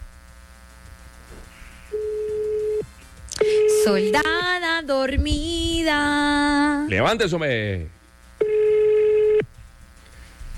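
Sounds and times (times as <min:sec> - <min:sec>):
telephone line tone on a redialed call: 0:01.9 - 0:02.8, 0:03.4 - 0:04.2, 0:08.4 - 0:09.5
speech: 0:03.9 - 0:08.0.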